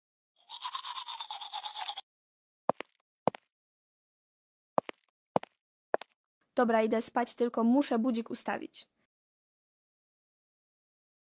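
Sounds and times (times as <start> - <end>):
teeth being brushed: 0.4 - 2.0
speech: 6.6 - 9.0.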